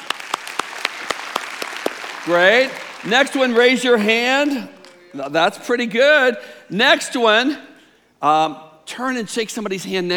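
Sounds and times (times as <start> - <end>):
audience clapping: 0.0 - 5.1
speech: 2.3 - 10.1.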